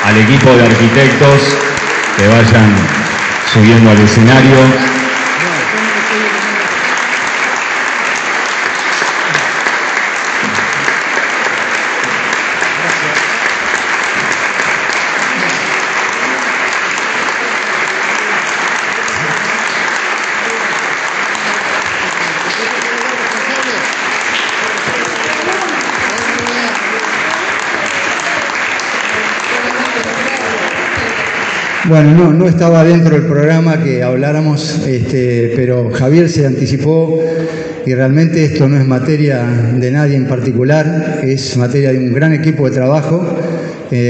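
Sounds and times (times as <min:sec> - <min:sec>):
audience applause: 0:00.0 - 0:33.1
speech: 0:00.1 - 0:05.0, 0:31.9 - 0:44.0.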